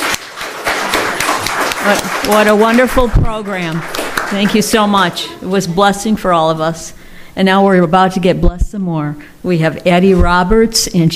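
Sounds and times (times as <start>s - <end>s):
audience applause: 0.0s - 4.8s
speech: 1.8s - 11.1s.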